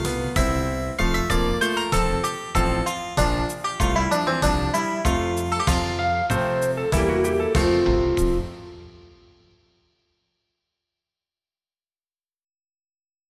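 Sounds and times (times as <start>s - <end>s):
midi music: 0.0s - 9.3s.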